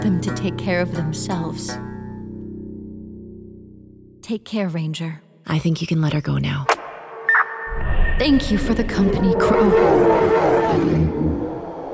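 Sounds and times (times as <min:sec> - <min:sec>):
speech: 0:00.0 - 0:01.9, 0:04.3 - 0:06.7, 0:08.2 - 0:11.3
bear roaring: 0:09.3 - 0:11.9.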